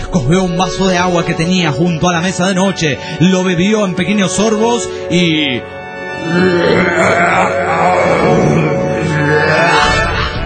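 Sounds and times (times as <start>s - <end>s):
speech: 0.1s - 8.5s
huge burp: 6.2s - 10.4s.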